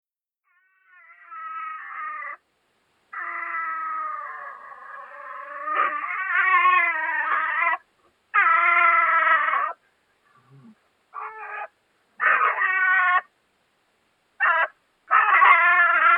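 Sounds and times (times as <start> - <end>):
European pine marten yowling during the mating season: 0.4 - 2.4, 3.1 - 9.8, 11.1 - 13.3, 14.4 - 16.1.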